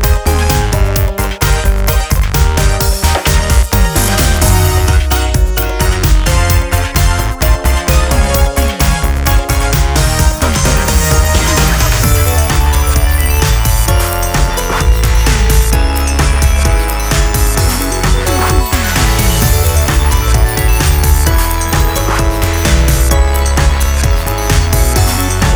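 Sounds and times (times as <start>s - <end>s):
instrumental music: 0.0s - 25.5s.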